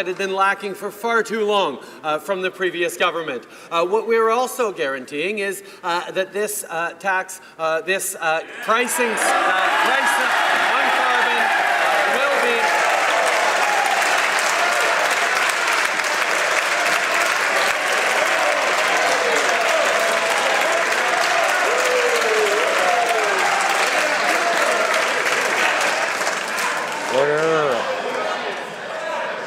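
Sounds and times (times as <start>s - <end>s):
speech: 0.0s - 11.0s
parliament members applauding: 8.5s - 29.3s.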